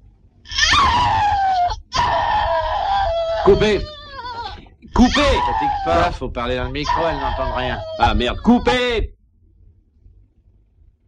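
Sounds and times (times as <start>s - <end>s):
woman's scream from a film's shower scene: 0.5s - 6.2s, 6.8s - 8.8s
speech: 3.4s - 4.0s, 5.0s - 9.2s.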